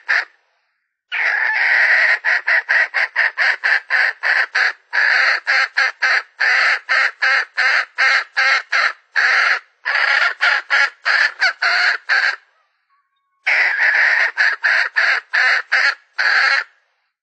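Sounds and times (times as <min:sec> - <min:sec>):
Red junglefowl hen cackling: 0:00.0 - 0:00.4, 0:01.1 - 0:16.8.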